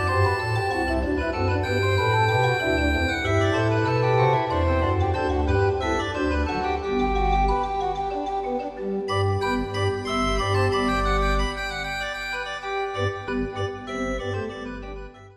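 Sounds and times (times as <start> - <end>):
digital organ playing: 0.0 - 15.3.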